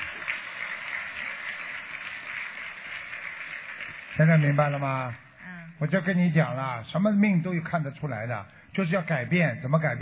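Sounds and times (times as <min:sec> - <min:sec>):
audience applause: 0:00.0 - 0:05.0
speech: 0:04.2 - 0:05.2, 0:05.8 - 0:10.0.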